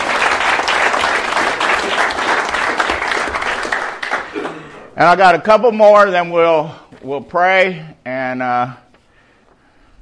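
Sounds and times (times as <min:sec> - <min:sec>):
audience applause: 0:00.0 - 0:04.7
speech: 0:05.0 - 0:08.8.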